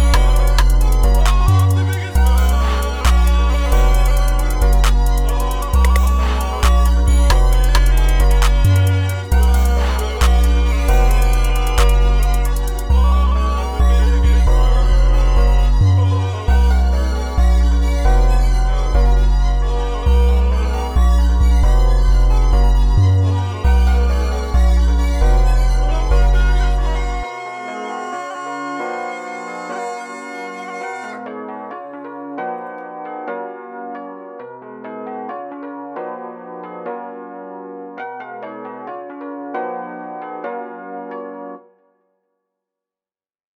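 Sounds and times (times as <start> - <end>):
instrumental music: 0.0 - 32.0.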